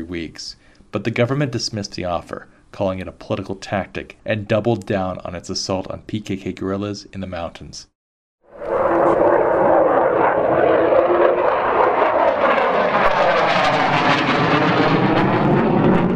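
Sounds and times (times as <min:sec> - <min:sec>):
speech: 0:00.0 - 0:07.9
warplane engines roaring: 0:08.5 - 0:16.1.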